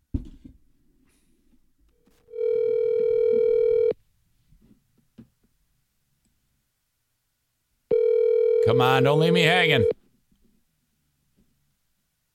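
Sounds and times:
telephone dial tone: 0:02.3 - 0:04.0, 0:07.9 - 0:10.0
speech: 0:08.7 - 0:10.0.

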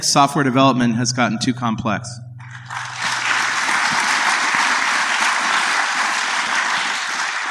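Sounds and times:
speech: 0:00.0 - 0:02.9
audience clapping as a vote: 0:02.4 - 0:07.5.

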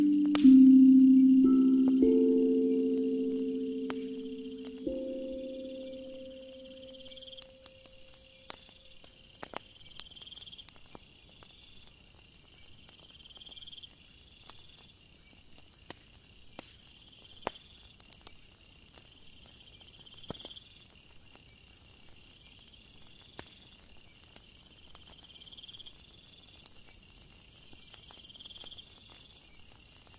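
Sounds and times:
ethereal drum ringing tones: 0:00.0 - 0:07.2
bonfire firewood crackling: 0:00.0 - 0:30.1
crickets chirping: 0:00.0 - 0:30.1.

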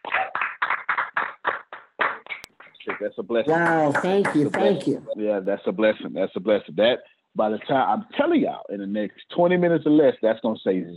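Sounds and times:
audience clapping in unison: 0:00.0 - 0:05.1
speech: 0:02.9 - 0:10.9.

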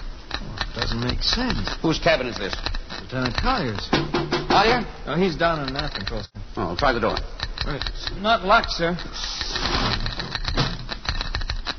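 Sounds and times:
Geiger counter clicking: 0:00.0 - 0:11.7
speech: 0:00.8 - 0:09.9.

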